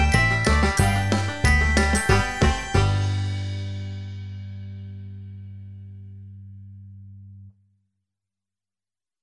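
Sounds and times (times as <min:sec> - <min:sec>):
improvised guitar: 0:00.0 - 0:05.3.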